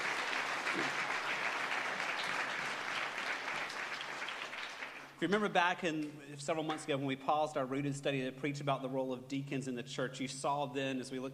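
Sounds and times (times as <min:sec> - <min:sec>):
audience round of applause: 0:00.0 - 0:05.2
speech: 0:05.2 - 0:11.3.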